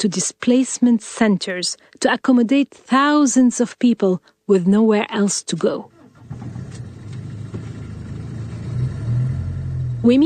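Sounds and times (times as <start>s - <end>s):
speech: 0.0s - 5.9s, 10.0s - 10.2s
car driving out to a school: 5.9s - 10.2s.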